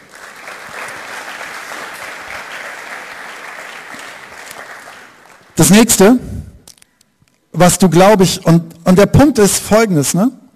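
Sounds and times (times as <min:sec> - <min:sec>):
audience applause: 0:00.0 - 0:05.6
speech: 0:05.6 - 0:06.3, 0:07.6 - 0:10.4.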